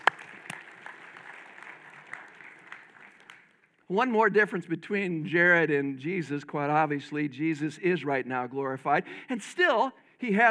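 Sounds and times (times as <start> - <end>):
audience applause: 0.0 - 3.7
speech: 3.9 - 10.4.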